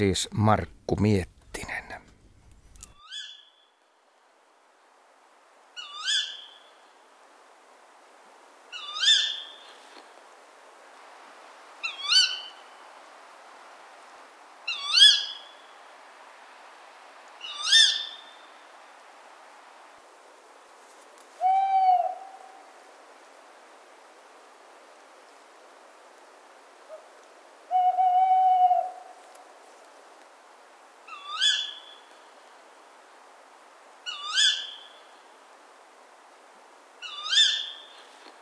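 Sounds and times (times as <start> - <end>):
speech: 0.0 - 1.8
tawny owl hooting: 3.0 - 3.5, 5.8 - 6.8, 8.7 - 9.8, 11.8 - 12.7, 14.6 - 15.6, 17.4 - 18.4, 21.4 - 22.7, 26.8 - 27.1, 27.7 - 29.2, 31.1 - 32.2, 34.0 - 35.1, 37.0 - 38.1.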